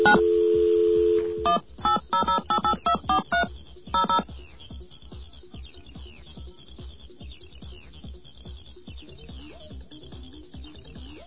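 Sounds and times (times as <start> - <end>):
telephone dial tone: 0.0 - 4.2.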